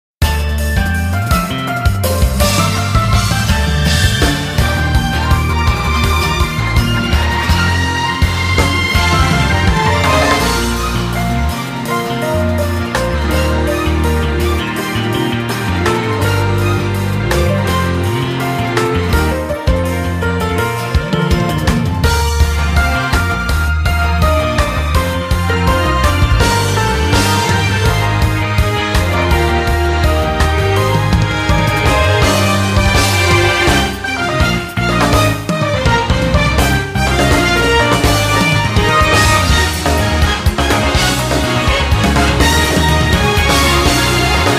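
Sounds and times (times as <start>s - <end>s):
battle background music: 0.3s - 44.5s.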